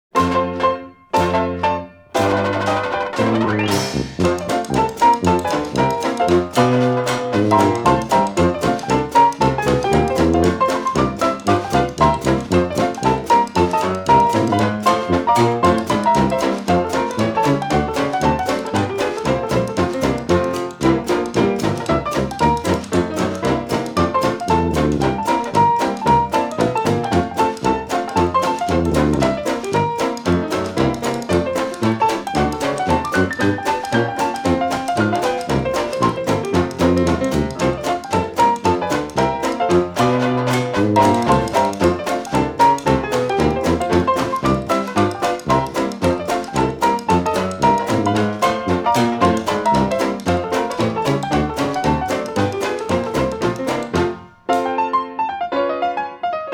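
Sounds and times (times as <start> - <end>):
ragtime music: 0.0 - 56.4.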